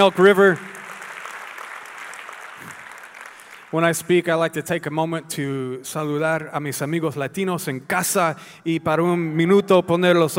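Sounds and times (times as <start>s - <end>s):
speech: 0.0s - 0.7s, 3.7s - 10.3s
audience applause: 0.0s - 3.9s.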